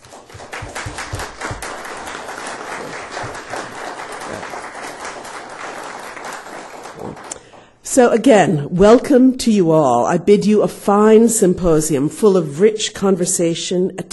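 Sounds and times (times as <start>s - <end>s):
audience at a university symposium clapping: 0.0s - 7.6s
speech: 8.0s - 14.1s.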